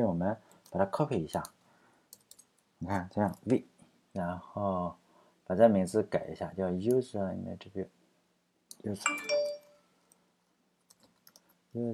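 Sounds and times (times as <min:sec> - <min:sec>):
speech: 0:00.0 - 0:01.6, 0:02.8 - 0:08.0, 0:08.8 - 0:09.4, 0:11.7 - 0:11.9
text message notification chime: 0:09.0 - 0:09.8.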